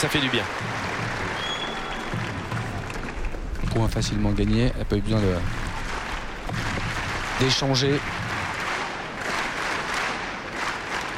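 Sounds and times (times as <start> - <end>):
speech: 0.0 - 0.8, 3.7 - 5.6, 7.4 - 8.2
tennis crowd clapping in rhythm to encourage the Czech player: 0.0 - 11.1.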